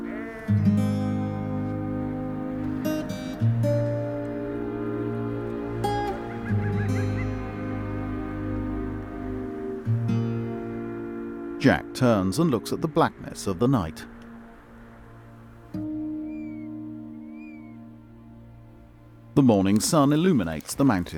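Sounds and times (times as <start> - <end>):
sheep bleating around a tent in the mountains at night: 0.0 - 1.5, 6.2 - 8.0
low tonal drone: 0.8 - 19.4
speech: 11.6 - 14.2, 19.4 - 21.1.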